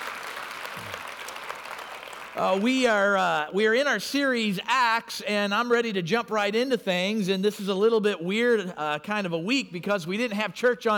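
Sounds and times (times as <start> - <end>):
audience applauding: 0.0 - 2.8
speech: 2.4 - 10.9.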